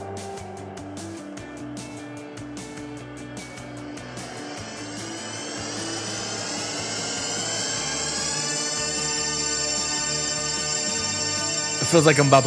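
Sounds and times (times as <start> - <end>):
THX theater intro sound: 0.9 - 12.4
speech: 11.9 - 12.4.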